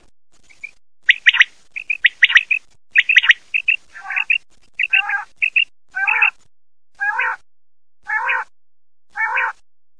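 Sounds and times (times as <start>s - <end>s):
quail: 0.5s - 6.4s, 7.0s - 7.4s, 8.0s - 8.5s, 9.1s - 9.6s.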